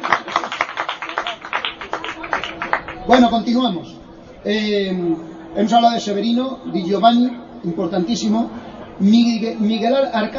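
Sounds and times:
audience rhythmic clapping for guests from Majalrayo: 0.0s - 3.1s
speech: 3.1s - 10.3s.

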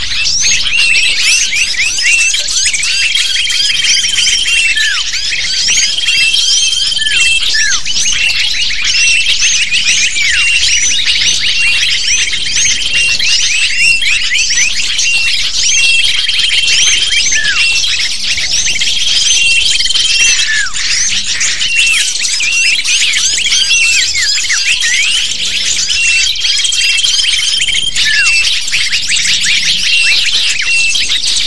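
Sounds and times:
many lovebirds squeaking and screeching: 0.0s - 31.4s.

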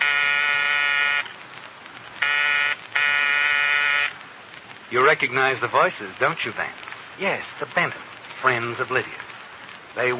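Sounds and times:
harsh electric front-door buzzer: 0.0s - 1.3s, 2.2s - 4.1s
speech: 4.9s - 9.3s, 10.0s - 10.1s.

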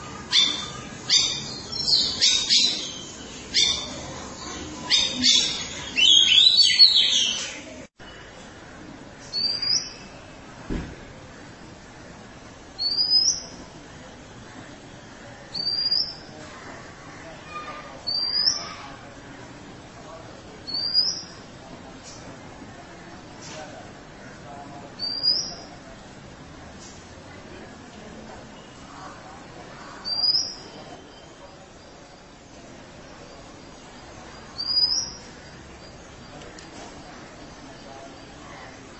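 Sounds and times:
Oriental magpie-robin song: 0.3s - 7.6s, 9.3s - 10.2s, 12.8s - 13.6s, 15.5s - 16.3s, 18.0s - 18.8s, 20.6s - 21.4s, 25.0s - 25.7s, 30.0s - 31.4s, 34.5s - 36.2s.

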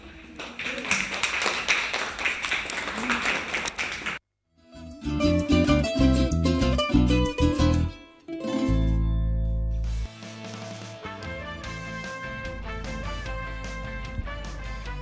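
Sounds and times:
fourth-grade class of children applauding as a farewell: 0.0s - 4.2s
music: 4.5s - 14.9s.

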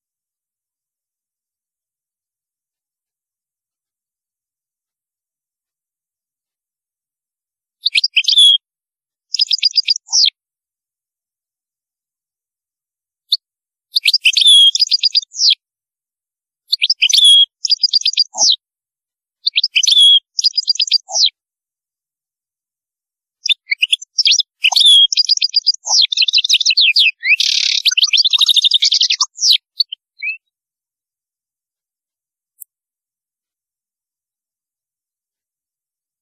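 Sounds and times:
European goldfinch twittering song: 7.8s - 8.6s, 9.3s - 10.3s, 14.0s - 15.6s, 16.7s - 18.6s, 19.4s - 21.4s, 23.4s - 30.5s.

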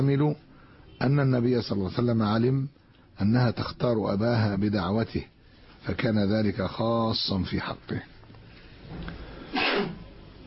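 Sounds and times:
speech: 0.0s - 8.1s, 8.9s - 9.2s, 9.8s - 10.0s
sneeze during a religious lecture: 9.5s - 10.1s.

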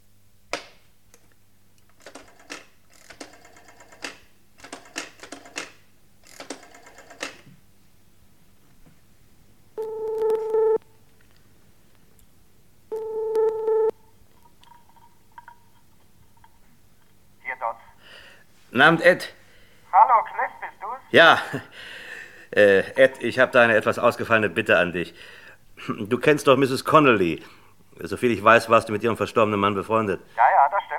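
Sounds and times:
telephone ringing tones: 9.8s - 10.8s, 12.9s - 14.0s
speech: 18.8s - 19.4s, 21.1s - 21.9s, 22.5s - 30.6s.

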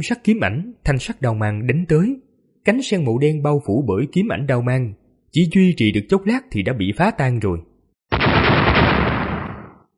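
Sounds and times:
speech: 0.0s - 8.2s
series of loud explosive impacts: 8.1s - 9.9s.

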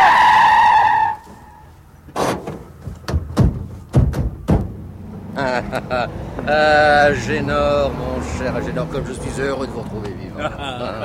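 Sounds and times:
car tires screeching: 0.0s - 11.0s
sharp thumps and clunks: 2.0s - 5.2s
laughter: 5.3s - 7.3s, 10.0s - 11.0s
speech: 5.7s - 11.0s.

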